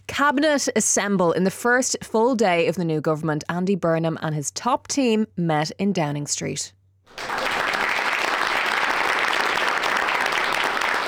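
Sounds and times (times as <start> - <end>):
speech: 0.1 - 7.4
applause: 7.1 - 11.0.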